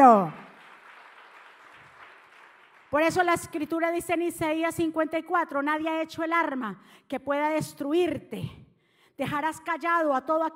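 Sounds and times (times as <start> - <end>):
speech: 0.0 - 0.4, 2.9 - 8.6, 9.2 - 10.5
audience applause: 0.0 - 3.0.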